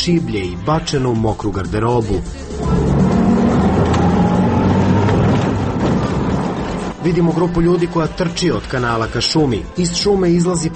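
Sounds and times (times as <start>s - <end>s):
speech: 0.0s - 3.0s, 7.0s - 10.7s
vehicle engine rumbling on a dirt road: 2.2s - 8.3s.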